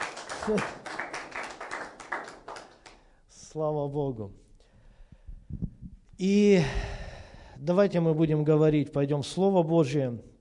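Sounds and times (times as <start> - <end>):
audience applause: 0.0 - 2.9
speech: 0.4 - 0.9, 3.6 - 4.4, 6.2 - 6.9, 7.6 - 10.3.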